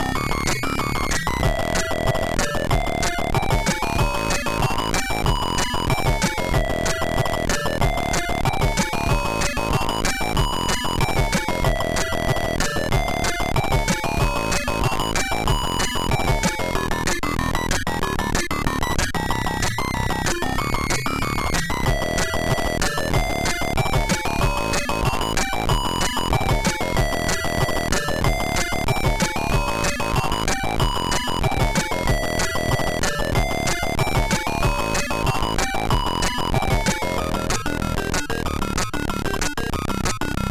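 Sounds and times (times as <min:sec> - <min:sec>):
MOS6581R3 SID sound chip music: 0:00.2 - 0:40.4.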